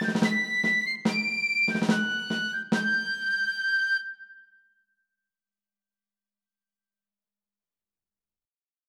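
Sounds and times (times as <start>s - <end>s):
march: 0.0s - 3.5s.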